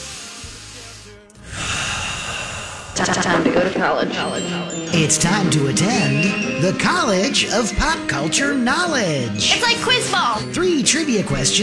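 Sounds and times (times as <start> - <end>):
deep breath by a nervous host: 0.0 - 3.0
speech: 3.0 - 11.6.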